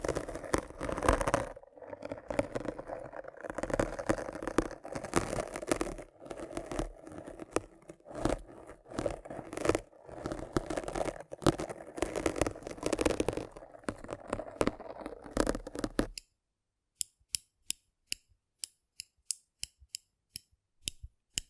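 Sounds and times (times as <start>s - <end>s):
rough brain cleaning and picking: 0.0s - 16.2s.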